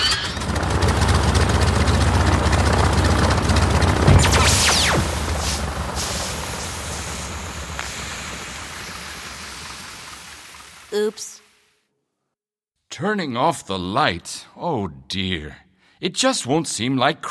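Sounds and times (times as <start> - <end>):
aircraft engine powering up for takeoff: 0.2 - 10.9
descending whistle: 4.1 - 5.4
speech: 13.0 - 17.3.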